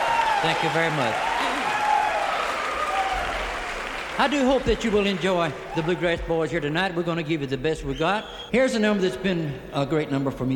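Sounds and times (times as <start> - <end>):
audience applause at a bluegrass show: 0.0 - 6.5
speech: 0.4 - 1.4, 4.2 - 10.5.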